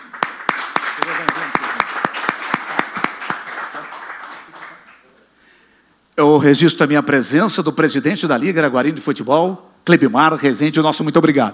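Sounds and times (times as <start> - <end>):
audience applause: 0.0 - 5.1
speech: 6.2 - 11.5.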